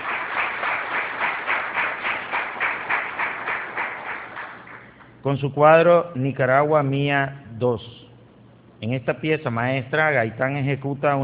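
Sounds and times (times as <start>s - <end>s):
audience applause: 0.0s - 5.0s
speech: 5.2s - 8.0s, 8.8s - 11.2s.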